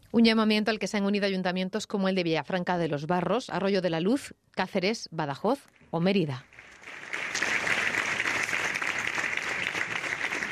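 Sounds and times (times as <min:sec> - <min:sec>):
speech: 0:00.1 - 0:06.8
applause ending a minute of silence: 0:06.4 - 0:10.5.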